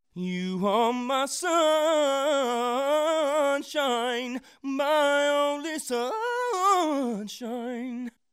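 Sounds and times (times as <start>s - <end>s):
person singing R and B with vowel modification: 0.2s - 8.1s.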